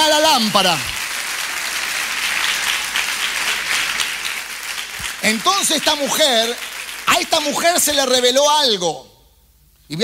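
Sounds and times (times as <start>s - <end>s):
audience applause: 0.1s - 8.0s
speech: 0.5s - 1.0s, 5.2s - 9.1s, 9.9s - 10.0s.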